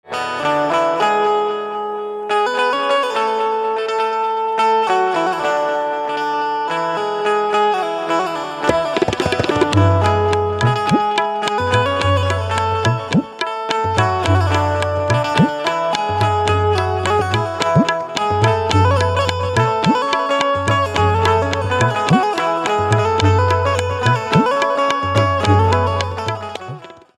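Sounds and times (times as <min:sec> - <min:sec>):
banjo with table: 0:00.1 - 0:27.1.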